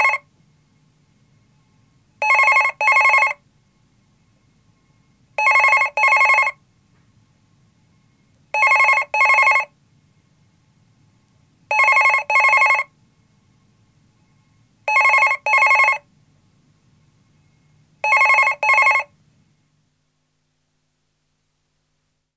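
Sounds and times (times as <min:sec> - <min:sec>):
telephones ringing: 0:02.2 - 0:03.4, 0:05.4 - 0:06.6, 0:08.6 - 0:09.7, 0:11.7 - 0:12.9, 0:14.9 - 0:16.0, 0:18.0 - 0:19.1.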